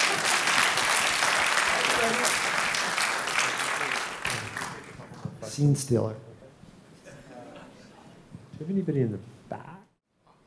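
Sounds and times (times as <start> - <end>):
audience applause: 0.0 - 5.2
speech: 5.6 - 6.3, 8.7 - 9.7.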